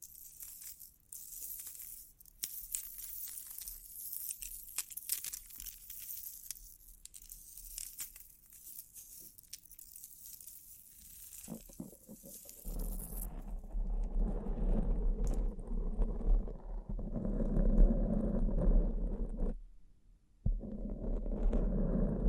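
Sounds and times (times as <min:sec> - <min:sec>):
light crisp tapping and rustling: 0:00.0 - 0:17.4
dense rumbling scrape with a low hum: 0:11.5 - 0:19.6, 0:20.5 - 0:22.2.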